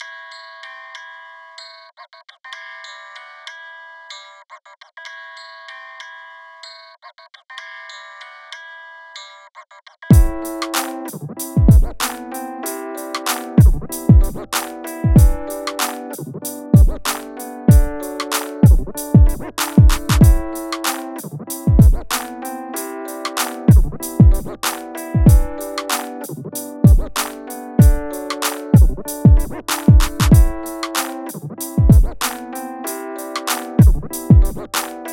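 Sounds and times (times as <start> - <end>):
original rap music: 10.1 - 35.1.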